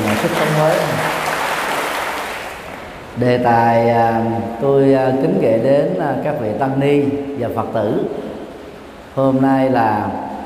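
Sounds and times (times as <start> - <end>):
crowd clapping: 0.0 - 3.0
speech: 0.2 - 1.1, 3.2 - 8.3, 9.2 - 10.2.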